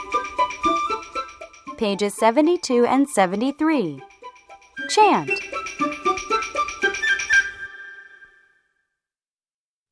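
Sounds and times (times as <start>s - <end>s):
fire station alarm ringing: 0.1s - 7.8s
speech: 1.8s - 4.1s, 4.9s - 5.9s.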